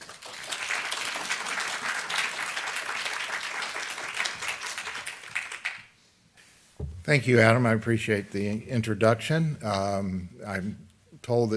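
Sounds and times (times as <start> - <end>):
audience applause welcoming a speaker before a talk on Chesapeake history: 0.0 - 5.8
speech: 7.1 - 11.5.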